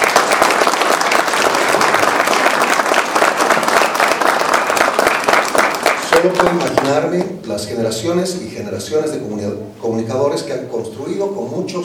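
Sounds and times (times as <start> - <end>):
audience applause: 0.0 - 7.0
speech: 6.2 - 11.8.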